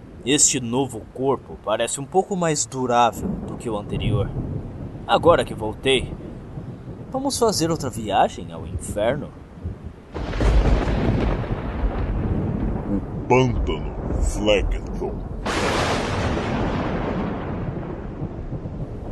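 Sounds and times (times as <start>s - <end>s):
rainstorm: 0.0s - 19.0s
speech: 0.2s - 6.2s, 7.1s - 9.4s, 13.3s - 15.3s
thunder: 3.2s - 7.9s, 9.6s - 19.0s.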